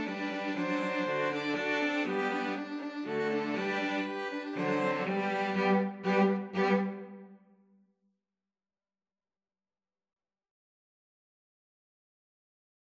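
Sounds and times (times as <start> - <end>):
two cellos: 0.0 - 7.4
two violins: 0.0 - 7.5.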